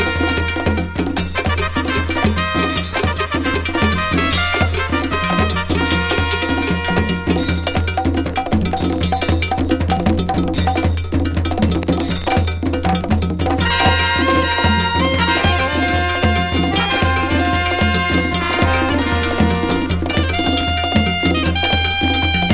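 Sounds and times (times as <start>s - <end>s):
Latin jazz percussion: 0.0s - 22.5s.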